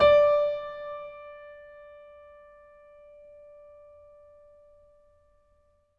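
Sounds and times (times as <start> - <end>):
stereo acoustic piano: 0.0 - 5.5.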